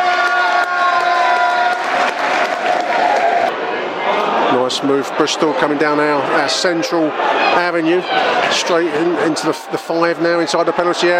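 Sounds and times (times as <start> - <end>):
football crowd applause: 0.0 - 3.5
speech: 4.7 - 11.1.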